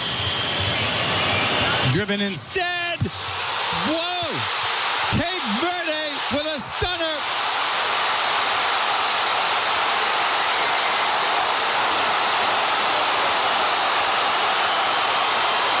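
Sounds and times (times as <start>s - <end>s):
football stadium crowd roaring after Cape Verde goal: 0.0s - 15.7s
speech: 1.9s - 7.3s.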